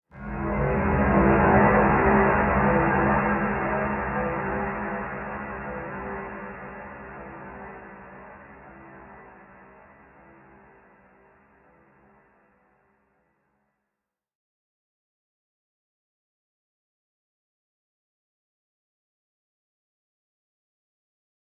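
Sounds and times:
musical stinger: 0.2 - 11.2.

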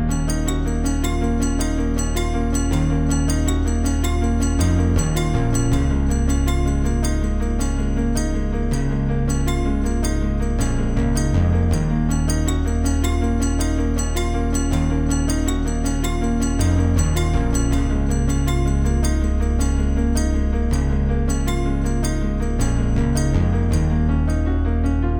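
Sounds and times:
ending menu music loop: 0.1 - 25.0.

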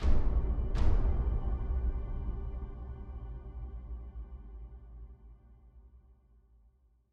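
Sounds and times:
big drums: 0.0 - 3.1.

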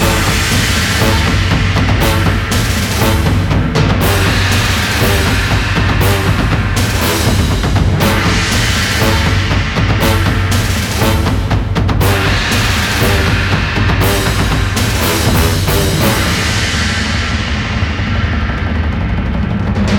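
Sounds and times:
tension music loop: 0.0 - 19.9.

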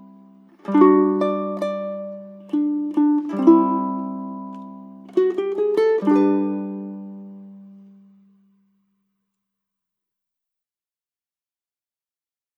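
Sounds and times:
underwater-themed ukulele background music: 0.0 - 8.2.

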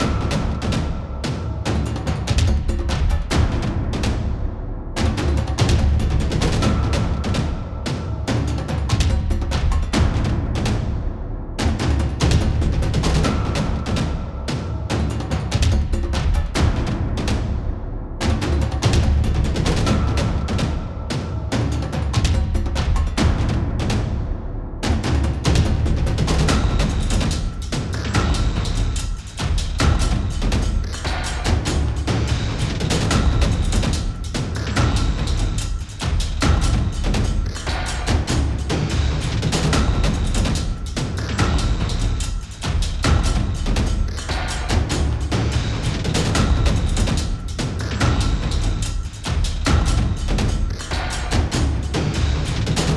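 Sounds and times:
battle percussion loop: 0.0 - 52.9.

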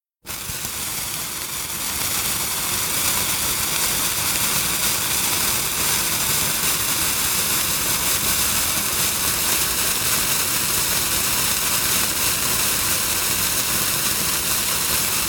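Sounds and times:
fuse burning: 0.3 - 15.2.

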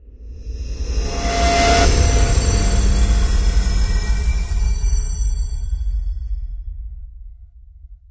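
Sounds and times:
swell: 0.0 - 6.2.

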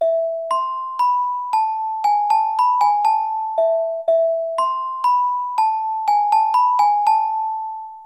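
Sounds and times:
celesta: 0.0 - 8.0.

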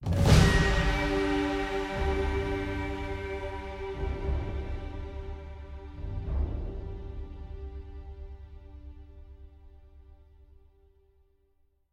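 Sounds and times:
string instrument: 0.0 - 11.1.

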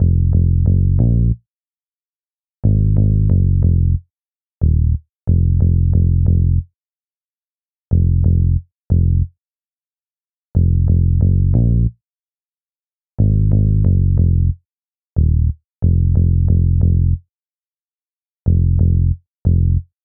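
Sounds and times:
highway stage bass: 0.0 - 1.4, 2.6 - 4.0, 4.6 - 6.7, 7.9 - 9.4, 10.6 - 12.0, 13.2 - 14.6, 15.2 - 17.2, 18.5 - 20.0.

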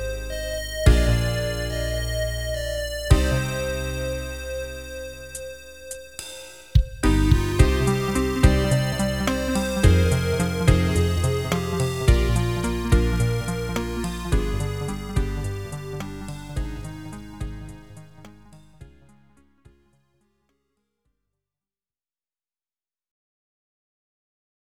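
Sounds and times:
tension music: 0.0 - 19.2.

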